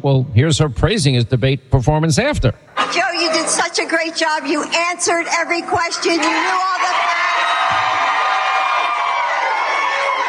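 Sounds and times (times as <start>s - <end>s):
speech: 0.0s - 8.0s
crowd cheering: 5.6s - 10.2s.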